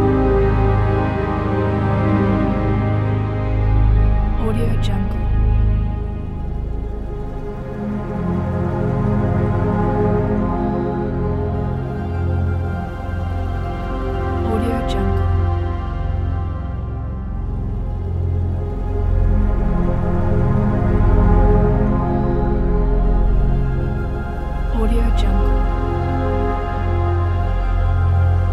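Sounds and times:
orchestral ambient soundscape: 0.0 - 28.5.

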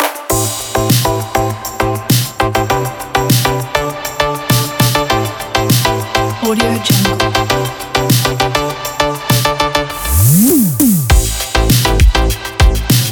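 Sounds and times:
electronic pop music: 0.0 - 13.1.

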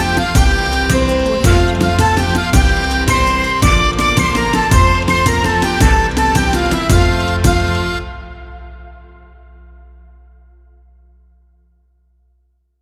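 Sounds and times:
pirate song: 0.0 - 10.1.

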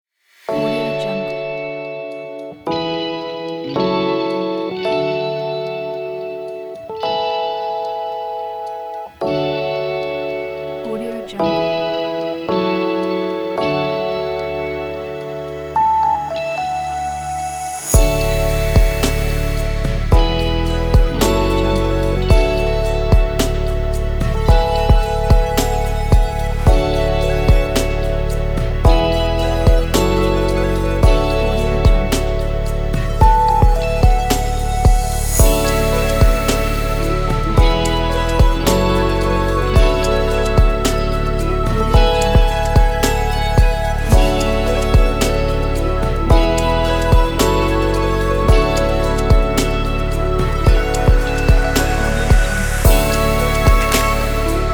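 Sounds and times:
ambient music: 0.4 - 54.7.

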